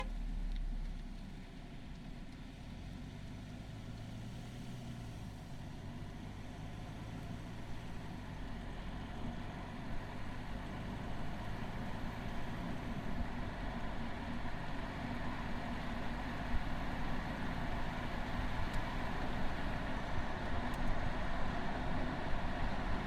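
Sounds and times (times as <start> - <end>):
VW Golf Variant TDI 2019 horn: 0.0 - 0.2
VW Golf Variant TDI 2019 diesel engine onboard starting, driving, reversing, stopping: 0.0 - 23.0.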